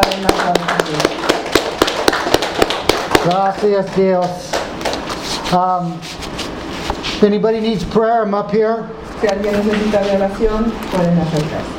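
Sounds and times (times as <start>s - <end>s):
audience clapping hands: 0.0s - 5.1s
speech: 3.2s - 4.5s, 5.5s - 6.2s, 7.2s - 11.7s.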